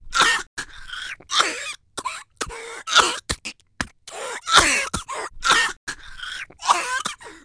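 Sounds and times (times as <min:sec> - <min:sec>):
person coughing: 0:01.3 - 0:03.5, 0:04.1 - 0:06.0, 0:06.6 - 0:07.4.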